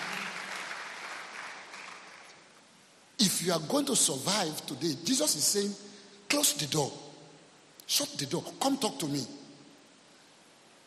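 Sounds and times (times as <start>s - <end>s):
church congregation clapping: 0.0s - 2.6s
speech: 3.2s - 7.1s, 7.9s - 9.4s.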